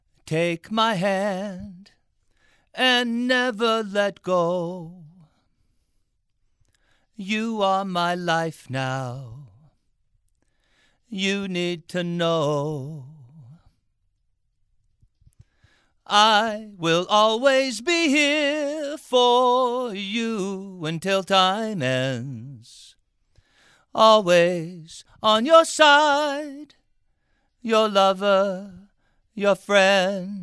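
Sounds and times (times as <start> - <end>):
male vocals: 0.2 - 2.0, 2.7 - 5.4, 7.2 - 9.8, 11.0 - 13.8, 16.0 - 23.0, 23.9 - 26.8, 27.6 - 30.4.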